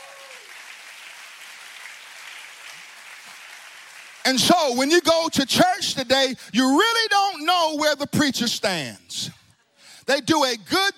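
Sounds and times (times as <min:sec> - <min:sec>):
audience applause: 0:00.0 - 0:04.4
speech: 0:04.3 - 0:09.4, 0:10.1 - 0:10.9.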